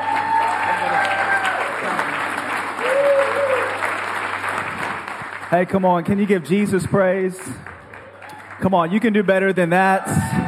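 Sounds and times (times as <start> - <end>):
congregation whooping: 0.0 - 4.0, 9.8 - 10.4
church congregation on Amelia Island clapping: 0.0 - 10.4
speech: 5.5 - 7.7, 8.6 - 10.2.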